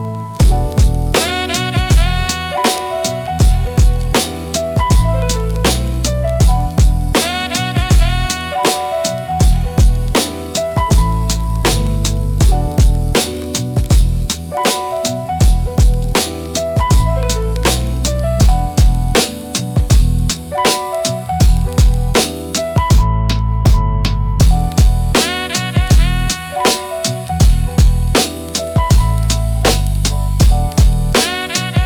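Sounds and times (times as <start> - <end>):
music beat: 0.4 - 31.8.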